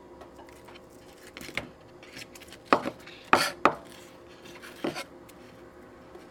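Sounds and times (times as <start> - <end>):
kitchen knife chopping an onion into small pieces on a board: 2.7 - 3.9.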